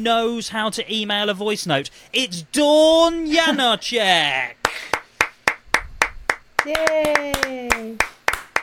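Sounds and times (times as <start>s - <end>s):
speech: 0.0s - 4.9s, 6.6s - 8.1s
two people clapping: 4.6s - 8.6s.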